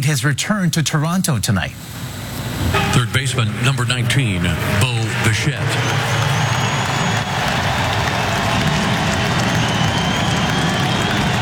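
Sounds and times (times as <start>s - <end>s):
speech: 0.0s - 6.3s
stadium crowd applauding in standing ovation: 4.0s - 11.4s.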